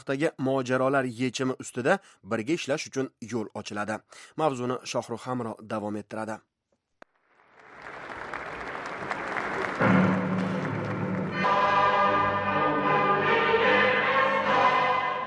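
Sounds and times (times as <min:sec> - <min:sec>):
speech: 0:00.0 - 0:06.5
clapping in Iran's parliament at a nuclear technology day ceremony: 0:07.0 - 0:11.5
national anthem music in a parliament: 0:09.3 - 0:15.2.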